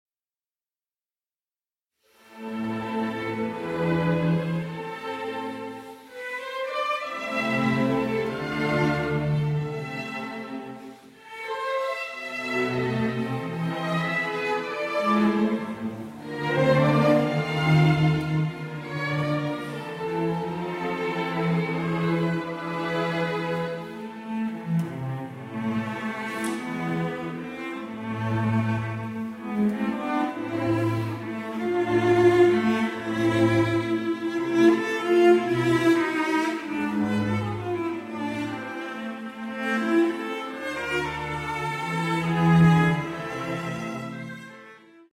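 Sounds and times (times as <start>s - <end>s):
sonata allegro for arpeggione and orchestra: 2.1s - 45.1s.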